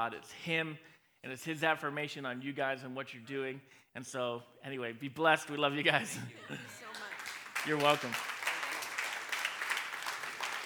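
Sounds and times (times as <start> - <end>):
speech: 0.0 - 7.0, 7.6 - 8.3
laughter: 6.0 - 8.0
audience clapping at a church service: 6.5 - 10.6.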